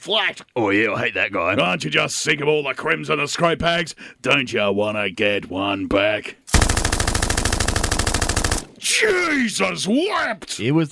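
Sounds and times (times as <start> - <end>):
speech: 0.0 - 6.4, 8.8 - 10.8
rapid automatic gunfire sound effect: 6.5 - 8.8.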